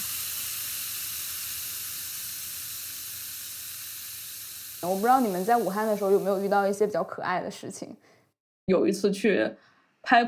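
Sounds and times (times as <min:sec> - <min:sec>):
effervescent tablet fizzing in water: 0:00.0 - 0:07.0
speech: 0:04.8 - 0:10.2.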